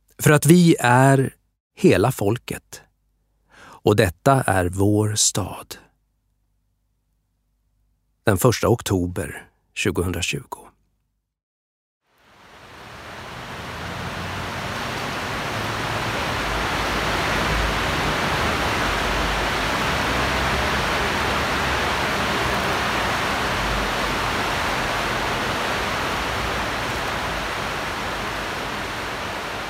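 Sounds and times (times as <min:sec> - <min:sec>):
speech: 0:00.2 - 0:02.8, 0:03.8 - 0:05.8, 0:08.2 - 0:10.7
river flowing under railway station arches in Leeds: 0:12.1 - 0:29.6.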